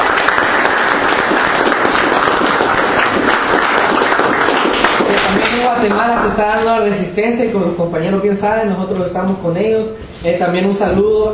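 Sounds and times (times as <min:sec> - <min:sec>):
audience applause: 0:00.0 - 0:06.2
speech: 0:05.7 - 0:11.3.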